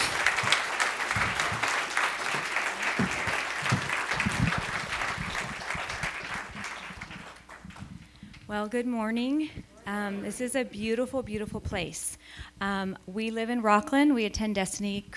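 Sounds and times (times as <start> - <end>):
church congregation applauding a guest speaker at a Freedom Sunday service: 0.0 - 8.0
speech: 8.5 - 15.1.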